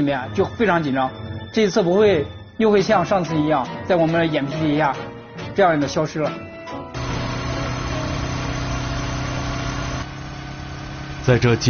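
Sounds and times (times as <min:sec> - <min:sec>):
speech: 0:00.0 - 0:06.5, 0:11.3 - 0:11.6
motorcycle engine: 0:07.0 - 0:11.6.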